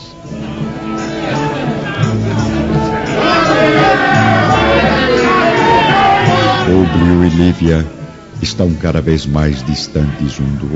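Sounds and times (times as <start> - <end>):
crowd running and shouting outside: 0.3 - 7.1
speech: 7.0 - 10.7.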